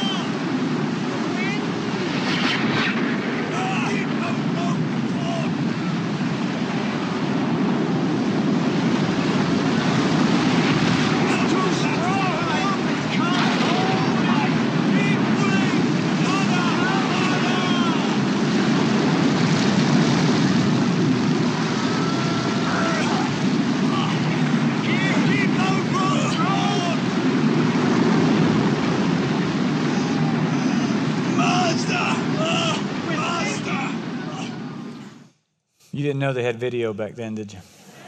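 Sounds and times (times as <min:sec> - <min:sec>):
violent storm at sea with boat: 0:00.0 - 0:35.4
speech: 0:36.0 - 0:37.8.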